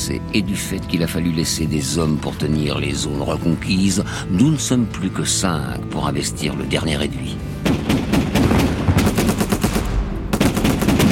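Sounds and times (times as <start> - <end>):
speech: 0.0 - 8.0
machine-gun fire in urban combat from Serbian guns: 7.6 - 11.1.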